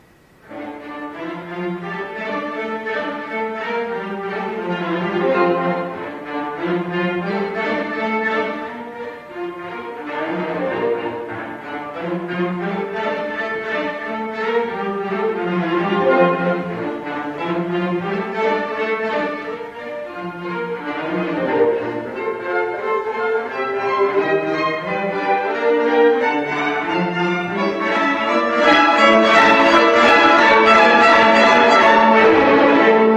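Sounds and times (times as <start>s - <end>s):
quartet playing: 0.4s - 33.1s.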